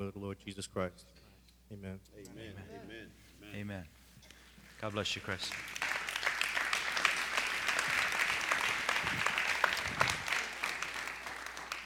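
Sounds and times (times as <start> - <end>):
speech: 0.0 - 4.0, 4.8 - 5.9
audience hand clapping: 4.7 - 11.8.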